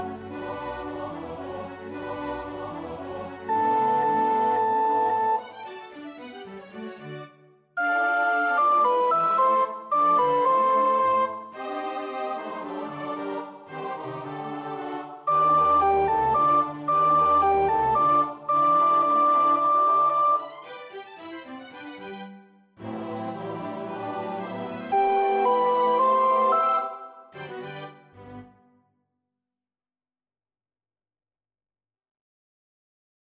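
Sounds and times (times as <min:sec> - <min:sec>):
soprano singing: 0:00.0 - 0:05.4, 0:07.8 - 0:20.5, 0:22.8 - 0:27.8.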